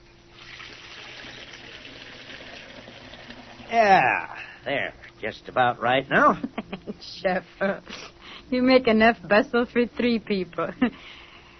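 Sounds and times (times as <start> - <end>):
water pouring into a tea kettle: 0.3 - 3.7
speech: 3.7 - 11.2.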